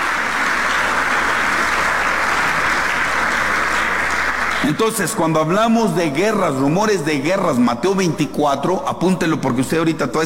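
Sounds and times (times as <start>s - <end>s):
audience applauding: 0.0s - 5.5s
speech: 4.6s - 10.2s.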